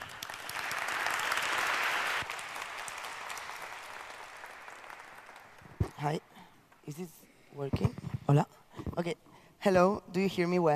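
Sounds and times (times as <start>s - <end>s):
audience applause: 0.0s - 5.8s
speech: 6.0s - 6.3s, 6.9s - 10.7s.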